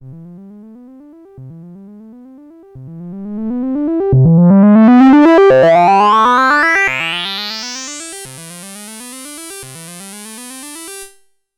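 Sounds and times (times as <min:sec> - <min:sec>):
12dB SVF and 6dB BPF distorted filter sweep: 0:03.1 - 0:09.0.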